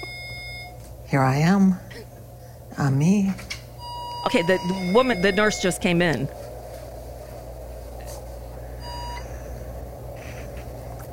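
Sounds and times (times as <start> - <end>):
beeping alarm in a treatment room: 0.0 - 0.8, 3.8 - 6.3, 8.7 - 9.9
speech: 1.1 - 2.1, 2.8 - 3.5, 4.2 - 6.4.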